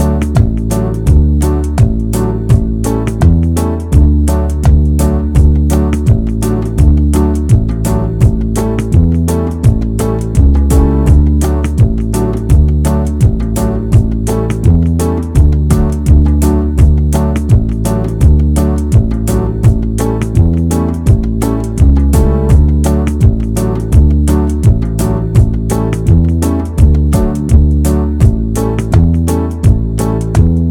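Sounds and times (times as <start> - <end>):
banjo backing track in the key of D: 0.0 - 30.6.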